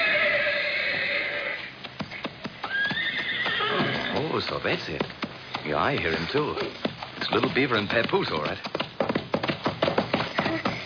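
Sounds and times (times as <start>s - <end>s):
horse whinnying: 0.0s - 4.3s
hoof clops: 0.8s - 10.8s
speech: 4.4s - 8.8s.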